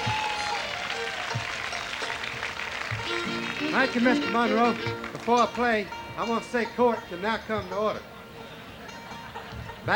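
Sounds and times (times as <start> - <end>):
audience applause welcoming a singer at a barbecue event: 0.0 - 5.3
speech: 3.7 - 8.1.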